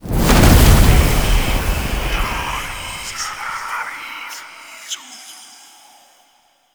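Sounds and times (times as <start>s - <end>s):
firelight activating: 0.0s - 3.5s.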